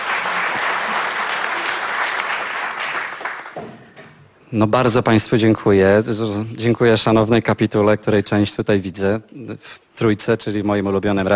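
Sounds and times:
audience applause: 0:00.0 - 0:03.6
speech: 0:04.5 - 0:11.3.

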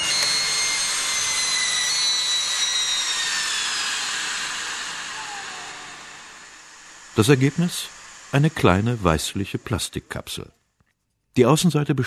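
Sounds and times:
faint high whistling tones of heat press: 0:00.0 - 0:09.9
heat press compressing a substance in a metal mould: 0:00.0 - 0:10.5
speech: 0:07.2 - 0:10.6, 0:11.4 - 0:12.0.

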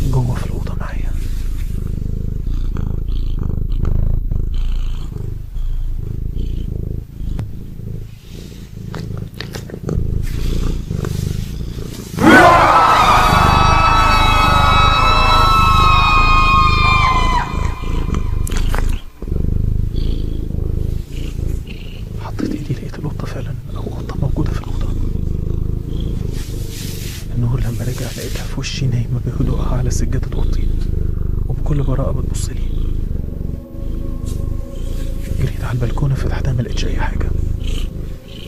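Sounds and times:
cat breathing and purring in a room: 0:00.0 - 0:38.4
speech: 0:00.2 - 0:00.6
drawn-out high cat cry: 0:12.2 - 0:19.2.

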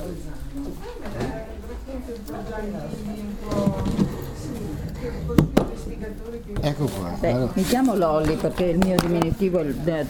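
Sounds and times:
murmur of voices: 0:00.0 - 0:10.0
speech: 0:02.2 - 0:04.0, 0:05.0 - 0:10.0
chair scraping as someone pulls it up to sit: 0:02.8 - 0:08.7.

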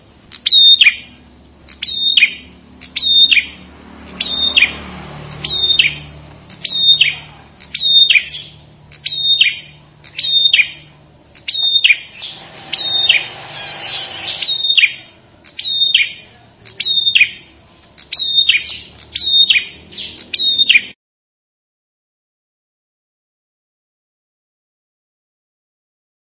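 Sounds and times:
prinia song with sharp high chirped phrases and trilled passages: 0:00.3 - 0:21.0.

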